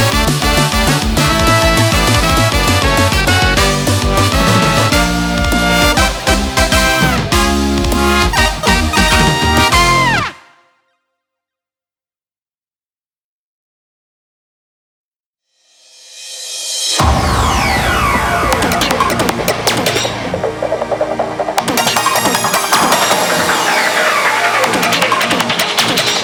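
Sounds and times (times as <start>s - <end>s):
Eurobeat remix: 0.0s - 10.4s, 17.0s - 26.2s.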